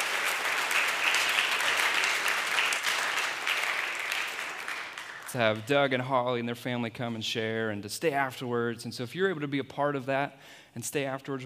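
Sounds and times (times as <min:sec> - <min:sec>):
audience applause: 0:00.0 - 0:05.7
speech: 0:05.3 - 0:11.4.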